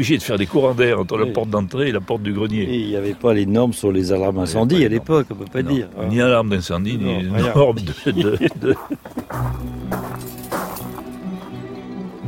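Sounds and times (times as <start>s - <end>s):
speech: 0.0s - 9.5s
laughter: 7.0s - 9.3s
sheep bells: 8.7s - 12.1s.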